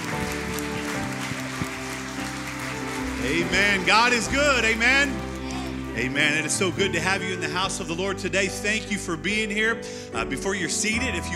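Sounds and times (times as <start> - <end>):
audience clapping hands in praise: 0.0 - 7.7
speech: 3.2 - 5.2, 6.0 - 11.3.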